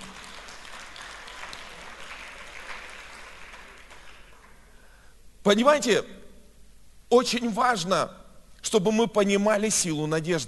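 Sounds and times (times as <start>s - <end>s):
audience applause: 0.0s - 4.7s
speech: 5.4s - 6.2s, 7.1s - 10.4s.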